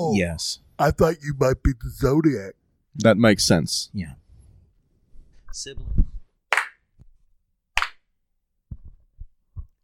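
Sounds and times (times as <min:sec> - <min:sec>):
speech: 0:00.0 - 0:04.2, 0:05.5 - 0:06.0
hand clapping for an acoustics check: 0:06.5 - 0:06.9, 0:07.8 - 0:08.1.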